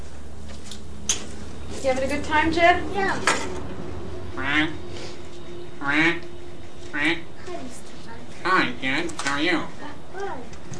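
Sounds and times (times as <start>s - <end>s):
low steady hum: 0.0s - 10.7s
speech: 1.8s - 3.7s, 4.4s - 4.9s, 5.8s - 6.3s, 6.9s - 7.8s, 8.4s - 10.6s
duck quacking: 4.4s - 4.8s, 5.8s - 6.2s, 6.9s - 7.3s, 8.4s - 9.6s.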